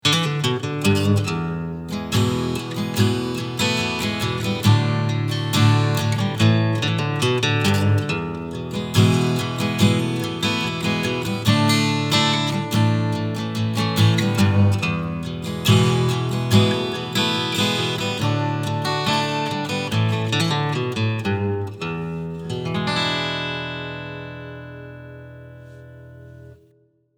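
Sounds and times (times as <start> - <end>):
strings strumming and picking: 0.0 - 26.6.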